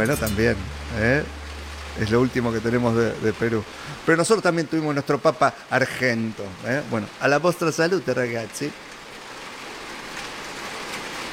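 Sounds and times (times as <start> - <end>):
speech: 0.0 - 1.4, 2.0 - 8.9
heavy rain on metal roof sheets: 0.0 - 11.3.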